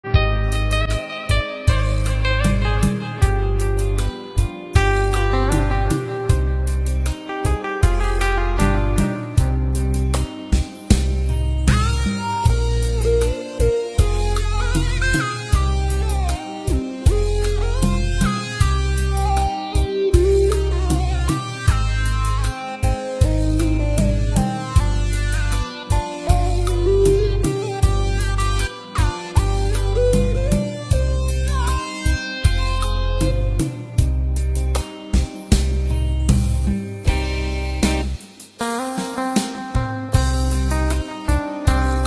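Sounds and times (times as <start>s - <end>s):
instrumental rumba: 0.5s - 42.0s.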